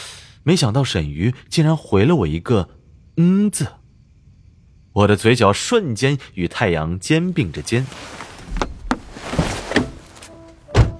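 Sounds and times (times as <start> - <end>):
speech: 0.4 - 3.8, 5.0 - 8.7
car door slammed shut: 8.4 - 10.9.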